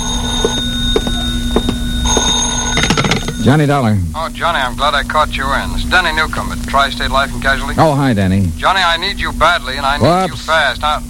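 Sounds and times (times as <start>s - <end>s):
old-style telephone bell ringing: 0.0s - 3.6s
speech: 3.4s - 11.0s.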